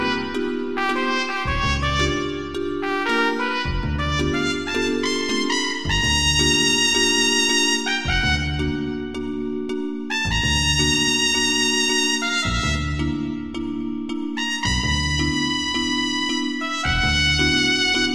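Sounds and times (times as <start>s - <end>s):
trumpet jive music: 0.0s - 9.3s, 10.1s - 18.1s.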